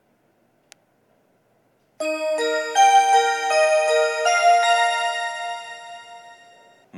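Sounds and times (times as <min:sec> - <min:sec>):
limited express train at a station: 0:02.0 - 0:06.7.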